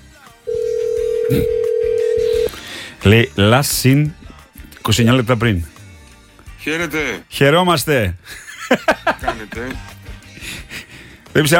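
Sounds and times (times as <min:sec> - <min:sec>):
telephone line tone during a prank call: 0:00.5 - 0:02.5
speech: 0:01.3 - 0:01.6, 0:03.0 - 0:04.2, 0:04.8 - 0:05.7, 0:06.6 - 0:10.6, 0:11.4 - 0:11.5
laughter: 0:08.3 - 0:09.9.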